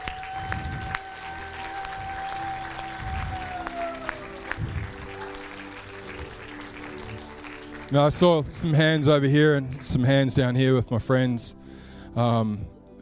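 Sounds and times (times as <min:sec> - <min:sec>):
audience applause: 0:00.0 - 0:10.2
speech: 0:07.9 - 0:11.6, 0:12.2 - 0:12.8.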